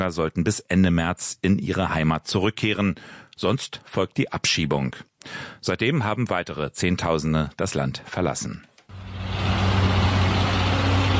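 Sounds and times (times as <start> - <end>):
speech: 0.0 - 8.7
heavy overloaded truck engine rumbling: 8.9 - 11.1.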